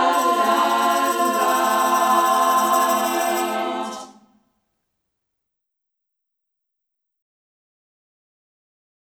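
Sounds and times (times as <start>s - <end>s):
Christmas song: 0.2s - 4.1s.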